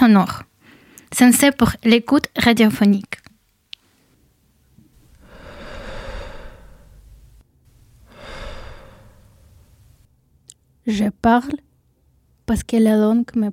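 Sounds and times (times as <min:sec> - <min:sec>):
speech: 0:00.1 - 0:00.4, 0:01.1 - 0:03.2, 0:10.9 - 0:11.7, 0:12.5 - 0:13.5
slow deep breaths: 0:04.9 - 0:10.1.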